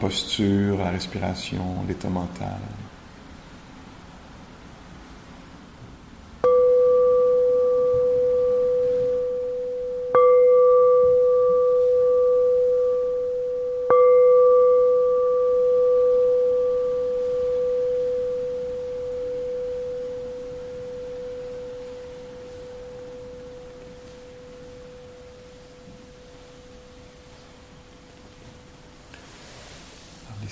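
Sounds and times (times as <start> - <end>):
speech: 0.0 - 2.8
meditation bell ringing: 6.4 - 28.8.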